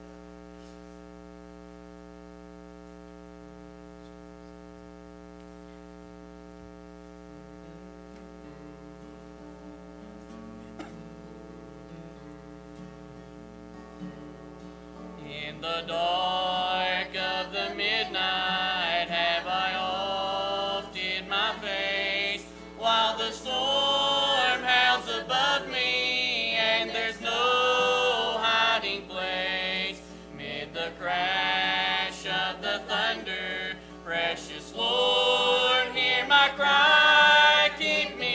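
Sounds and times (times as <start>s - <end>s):
family singing: 15.3s - 38.3s.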